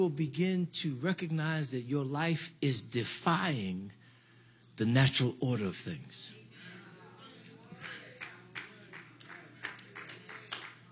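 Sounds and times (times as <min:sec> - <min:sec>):
speech: 0:00.0 - 0:04.0, 0:04.8 - 0:06.4
sparse audience clapping: 0:07.7 - 0:10.8.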